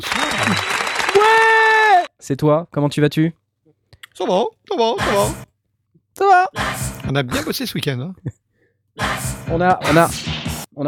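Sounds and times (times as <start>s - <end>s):
speech: 0.0s - 1.4s, 2.2s - 3.4s, 4.2s - 5.5s, 6.2s - 8.4s, 9.0s - 10.8s
audience applause: 0.0s - 2.1s.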